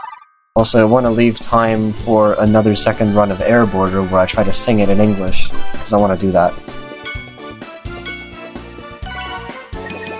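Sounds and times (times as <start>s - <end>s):
speech: 0.6s - 6.8s
bright video game ding chimes: 6.9s - 10.1s
tinkling electronic jingle: 7.0s - 10.1s.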